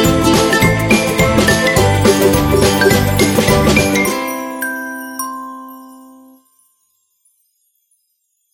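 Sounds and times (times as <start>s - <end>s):
positive happy ukulele music: 0.0s - 4.8s.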